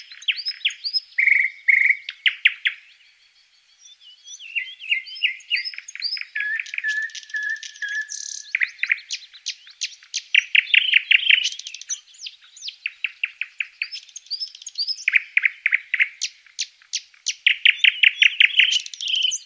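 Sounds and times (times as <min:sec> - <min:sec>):
birds chirping in a forest at dawn: 0:00.0 - 0:19.4.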